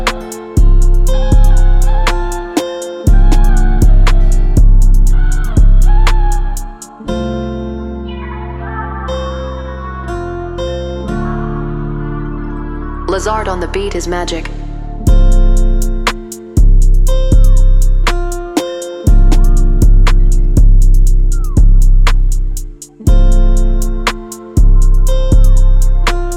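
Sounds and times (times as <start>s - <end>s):
trap type beat in A minor: 0.0s - 7.0s, 14.0s - 26.3s.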